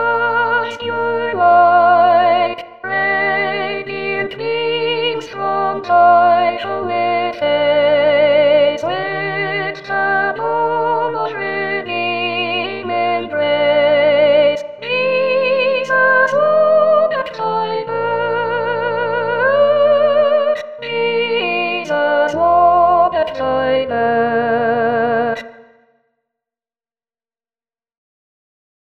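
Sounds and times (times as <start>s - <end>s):
soprano singing a carol: 0.0s - 25.5s.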